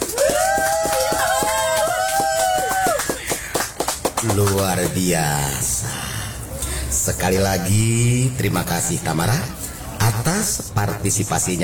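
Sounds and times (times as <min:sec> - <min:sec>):
audience applause: 0:00.0 - 0:04.7
speech: 0:04.3 - 0:05.9, 0:07.1 - 0:09.6, 0:10.2 - 0:11.6.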